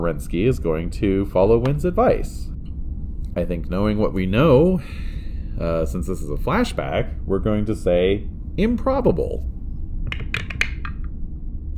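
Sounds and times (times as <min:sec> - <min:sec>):
speech: 0:00.0 - 0:02.6, 0:03.4 - 0:09.6
dice rolling: 0:10.1 - 0:11.1.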